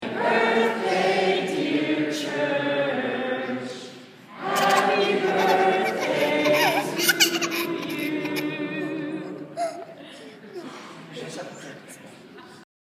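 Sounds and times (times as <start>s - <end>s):
children singing in a church: 0.0s - 9.8s
laughter: 4.4s - 10.8s, 12.2s - 12.7s.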